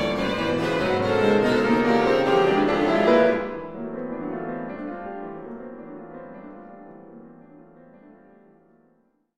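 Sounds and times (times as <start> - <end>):
piano quartet playing: 0.0 - 9.1.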